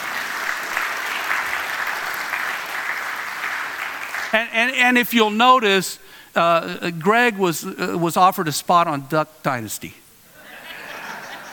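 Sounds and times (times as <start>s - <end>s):
audience clapping for a speaker: 0.0s - 4.5s
speech: 4.3s - 10.0s
laughter: 10.4s - 11.5s.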